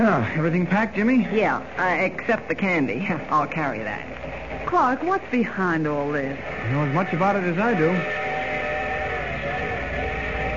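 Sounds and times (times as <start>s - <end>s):
speech: 0.1s - 8.3s
train station whistle: 6.5s - 10.5s.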